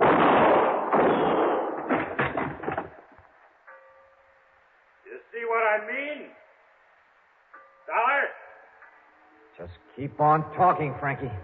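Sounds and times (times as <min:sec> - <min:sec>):
gunshots in a radio detective drama: 0:00.0 - 0:03.1
speech: 0:09.6 - 0:11.4.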